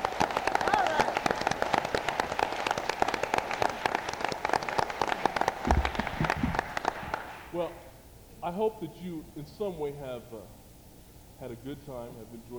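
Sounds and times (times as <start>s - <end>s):
audience clapping: 0.0s - 7.6s
speech: 8.5s - 10.6s, 11.4s - 12.5s.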